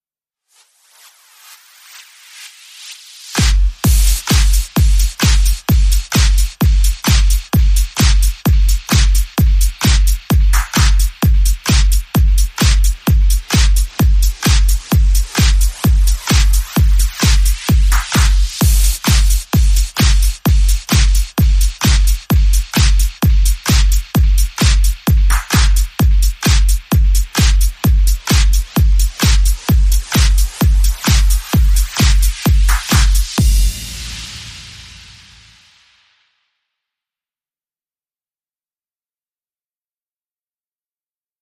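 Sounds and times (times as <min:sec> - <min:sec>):
music beat: 0:01.8 - 0:36.2.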